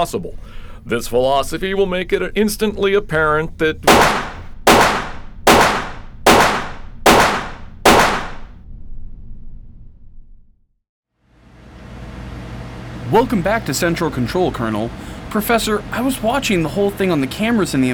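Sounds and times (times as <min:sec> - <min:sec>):
speech: 0:00.0 - 0:04.3, 0:13.1 - 0:17.9
gunshots, radio drama sound effect: 0:03.9 - 0:08.5.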